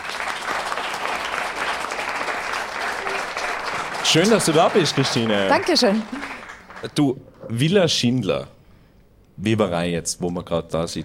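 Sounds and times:
audience applause: 0:00.0 - 0:07.2
speech: 0:04.1 - 0:08.6, 0:09.4 - 0:11.0.

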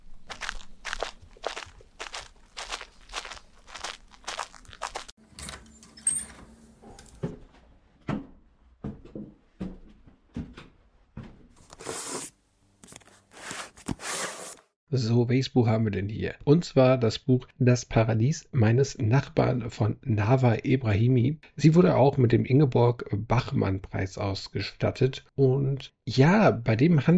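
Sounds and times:
footsteps of a person heading to a home library: 0:00.0 - 0:05.2
knocks crunches and rustles: 0:00.0 - 0:05.2
speech: 0:14.9 - 0:27.1.

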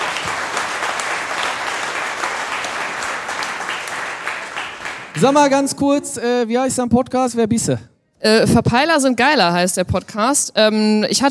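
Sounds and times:
audience applause: 0:00.0 - 0:05.4
speech: 0:05.2 - 0:11.2.

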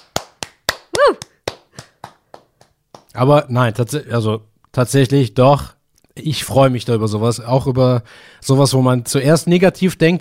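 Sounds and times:
hand clapping: 0:00.0 - 0:03.2
speech: 0:01.0 - 0:01.3, 0:03.2 - 0:10.2.

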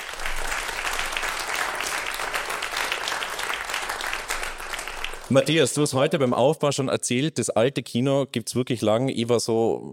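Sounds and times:
audience applause: 0:00.0 - 0:05.6
speech: 0:05.3 - 0:09.9.

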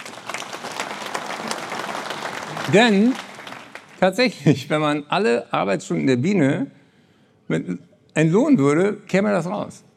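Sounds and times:
audience applause for a participant during a talk: 0:00.0 - 0:04.3
speech: 0:02.7 - 0:03.2, 0:04.0 - 0:06.8, 0:07.5 - 0:09.9.

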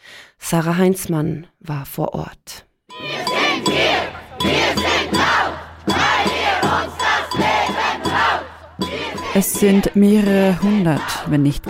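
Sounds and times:
speech: 0:00.5 - 0:03.0, 0:03.6 - 0:05.4, 0:09.4 - 0:11.6
protest crowd chanting at a rally: 0:02.9 - 0:11.6.

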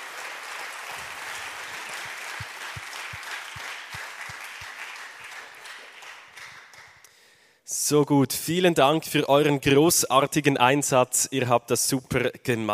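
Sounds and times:
audience applause: 0:00.0 - 0:07.0
speech: 0:07.9 - 0:12.7.

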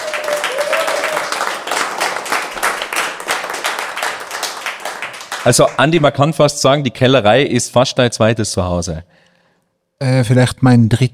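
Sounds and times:
audience applause: 0:00.0 - 0:06.0
speech: 0:05.4 - 0:09.2, 0:10.0 - 0:11.1.

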